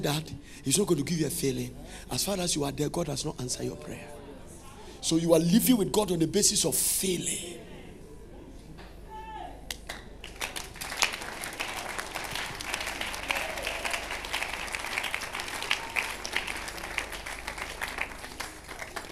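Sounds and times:
speech: 0:00.0 - 0:04.2, 0:05.0 - 0:07.7
audience clapping: 0:09.7 - 0:19.1.

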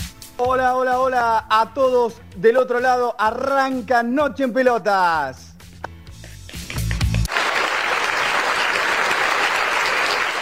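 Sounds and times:
speech: 0:00.4 - 0:05.5
colleagues applauding: 0:06.6 - 0:10.4.

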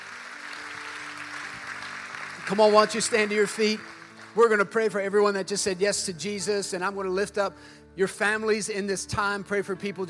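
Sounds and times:
audience clapping: 0:00.0 - 0:05.3
speech: 0:02.5 - 0:10.0.

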